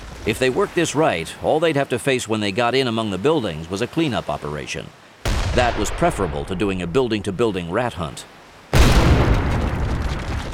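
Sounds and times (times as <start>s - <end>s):
speech: 0.2s - 5.0s, 5.6s - 8.4s
81mm mortar round exploding: 5.3s - 6.8s, 8.7s - 10.5s.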